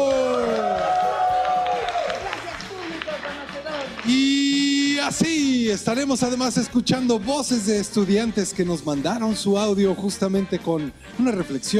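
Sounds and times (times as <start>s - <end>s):
audience clapping: 0.0s - 4.7s
speech: 4.0s - 4.3s, 5.0s - 11.7s.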